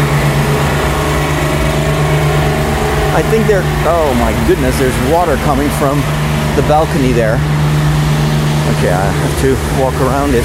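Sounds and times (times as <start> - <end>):
generator running: 0.0 - 10.4
speech: 3.2 - 7.6, 8.7 - 10.4.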